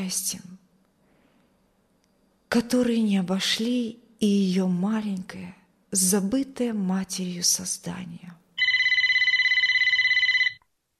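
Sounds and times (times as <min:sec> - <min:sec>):
speech: 0:00.0 - 0:00.5, 0:02.5 - 0:08.4
telephone ringing shrilly: 0:08.6 - 0:10.6.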